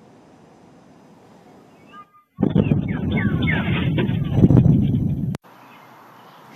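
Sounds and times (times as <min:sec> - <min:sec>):
sonic boom from fighter jets: 0:02.4 - 0:05.4.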